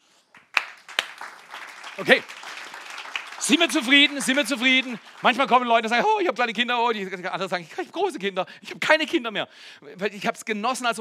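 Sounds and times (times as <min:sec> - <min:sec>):
audience clapping: 0:00.2 - 0:07.1
speech: 0:02.0 - 0:02.4, 0:03.5 - 0:10.9.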